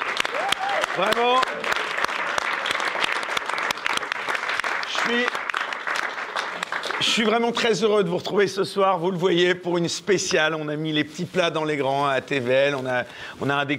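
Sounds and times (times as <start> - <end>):
audience applause: 0.0 - 7.8
speech: 1.0 - 1.7, 5.1 - 5.3, 7.0 - 13.7.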